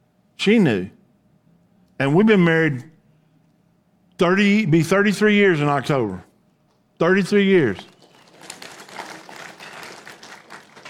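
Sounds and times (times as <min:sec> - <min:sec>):
speech: 0:00.4 - 0:01.0, 0:02.0 - 0:02.9, 0:04.2 - 0:06.3, 0:07.0 - 0:07.9
polite golf clap from audience: 0:07.8 - 0:10.8.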